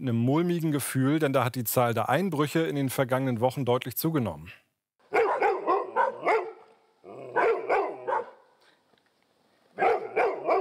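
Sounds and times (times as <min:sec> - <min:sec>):
speech: 0:00.0 - 0:04.6
dogs barking an alarm: 0:05.1 - 0:08.5, 0:09.8 - 0:10.5.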